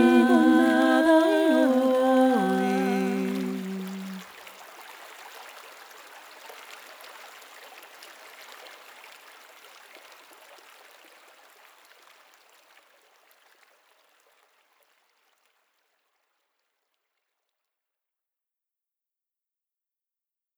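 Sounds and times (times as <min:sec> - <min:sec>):
rowing song: 0:00.0 - 0:04.2.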